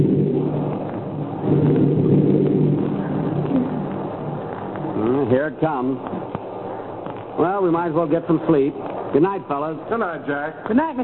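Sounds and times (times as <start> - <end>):
thunder clap: 0.0 - 8.0
rain falling: 0.0 - 11.0
speech: 5.6 - 6.4, 7.4 - 11.0.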